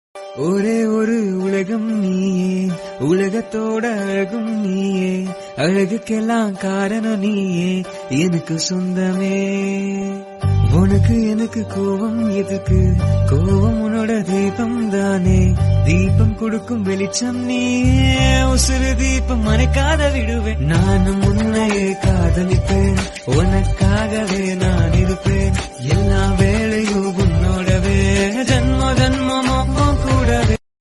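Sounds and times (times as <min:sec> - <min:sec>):
Tamil song: 0:00.2 - 0:30.6.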